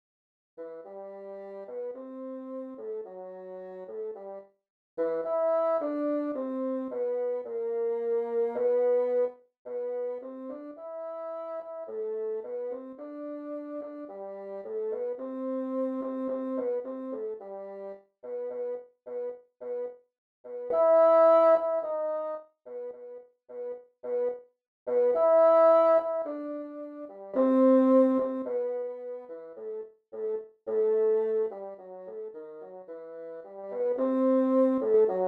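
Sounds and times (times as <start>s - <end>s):
bassoon: 0.6s - 35.2s.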